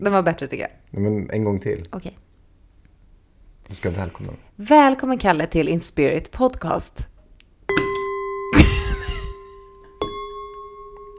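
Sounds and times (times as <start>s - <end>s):
speech: 0.0s - 2.3s, 3.7s - 7.1s
glass struck like a singing bowl: 7.7s - 11.1s.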